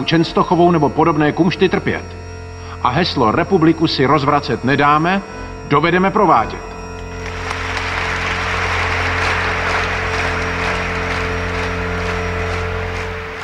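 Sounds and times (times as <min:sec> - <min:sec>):
speech: 0:00.0 - 0:02.2, 0:02.8 - 0:06.7
long crowd applause after a speech: 0:07.0 - 0:13.4.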